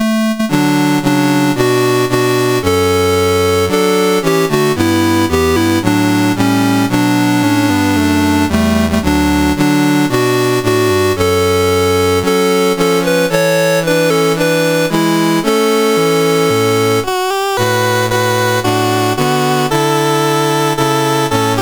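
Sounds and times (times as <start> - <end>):
CSG8580R5 chiptune national anthem: 0.0 - 21.6.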